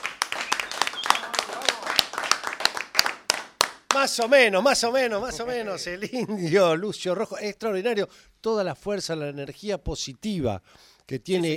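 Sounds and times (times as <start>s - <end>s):
audience clapping at a live show: 0.0s - 4.4s
speech: 4.0s - 11.5s.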